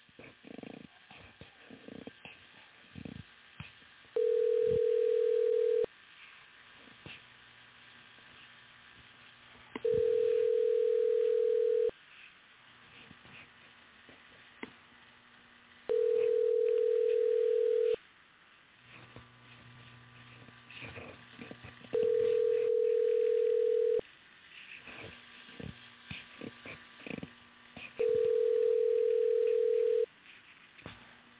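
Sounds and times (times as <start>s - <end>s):
telephone tone while redialing a call: 4.2s - 5.9s, 9.8s - 11.9s, 15.9s - 18.0s, 22.0s - 24.0s, 28.0s - 30.1s.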